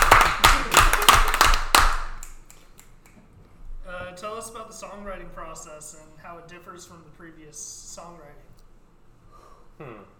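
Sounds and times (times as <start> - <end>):
hands clapping: 0.0 - 3.3
speech: 4.5 - 8.5, 9.8 - 10.1.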